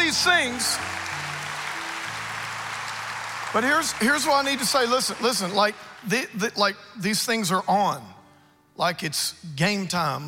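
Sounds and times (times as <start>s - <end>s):
audience applause: 0.0s - 6.6s
speech: 0.1s - 1.1s, 3.5s - 8.2s, 8.8s - 10.2s.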